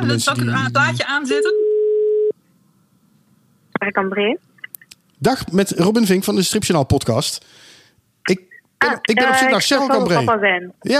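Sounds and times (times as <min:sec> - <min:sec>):
speech: 0:00.0 - 0:01.6, 0:03.8 - 0:04.5, 0:05.2 - 0:07.6, 0:08.2 - 0:10.9
telephone call tone while dialing: 0:01.4 - 0:02.3.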